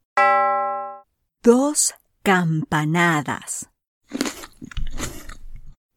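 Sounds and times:
speech: 1.4s - 3.7s
wet crunchy chewing of grapes: 4.0s - 5.8s.

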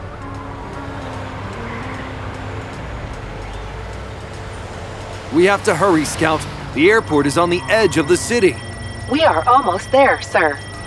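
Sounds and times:
light ticks: 0.0s - 6.6s
car driving along a road to the airport: 0.0s - 10.8s
speech: 5.3s - 10.8s.

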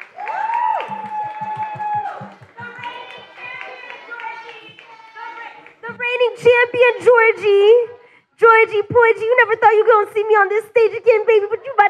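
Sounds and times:
loud cheers and high whoops: 0.0s - 5.6s
audience applauding: 0.0s - 5.8s
steady rhythmic low thumping: 0.7s - 7.5s
speech: 6.4s - 11.8s.

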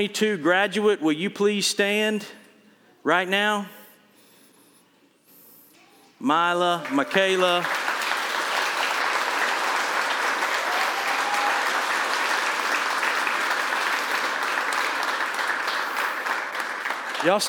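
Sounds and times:
speech: 0.0s - 2.4s, 3.0s - 3.8s, 6.2s - 7.8s, 17.2s - 17.4s
crowd applause: 6.7s - 17.4s.

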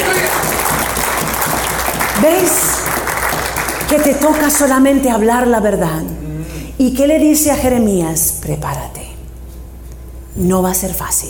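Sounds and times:
loud audience applause: 0.0s - 4.6s
speech: 2.2s - 2.7s, 3.9s - 6.2s, 6.8s - 9.1s, 10.4s - 11.2s.

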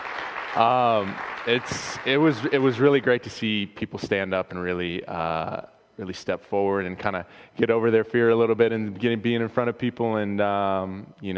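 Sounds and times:
audience applause: 0.0s - 3.0s
speech: 0.5s - 11.3s.

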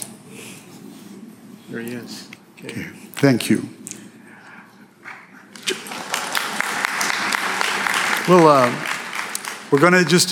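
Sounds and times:
speech: 1.7s - 3.8s, 8.3s - 8.9s, 9.7s - 10.2s
audience applause: 5.6s - 10.2s.

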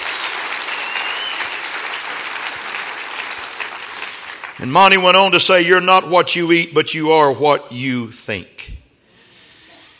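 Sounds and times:
audience clapping hands: 0.0s - 5.3s
speech: 4.6s - 8.8s.

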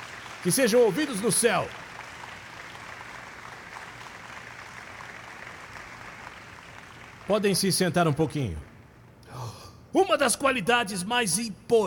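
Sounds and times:
audience applause: 0.0s - 7.6s
speech: 0.4s - 1.8s, 7.3s - 8.7s, 9.9s - 11.8s.

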